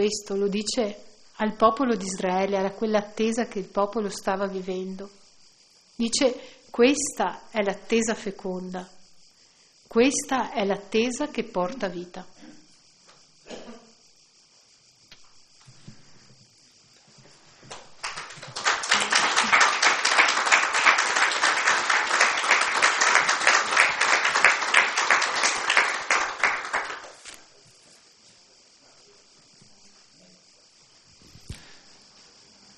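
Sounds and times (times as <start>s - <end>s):
speech: 0.0s - 5.2s, 6.0s - 9.0s, 9.9s - 12.6s
audience applause: 17.7s - 27.4s.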